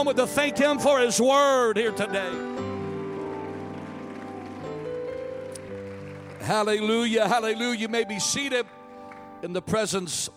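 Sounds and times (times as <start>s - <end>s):
speech: 0.0s - 2.7s, 6.4s - 8.8s, 9.4s - 10.3s
audience clapping hands: 2.5s - 7.8s, 8.4s - 9.4s.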